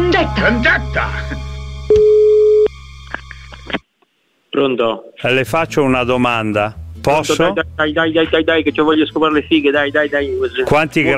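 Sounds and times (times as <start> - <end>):
speech: 0.2 - 2.2, 4.6 - 11.1
telephone tone after a dropped call: 1.9 - 2.7.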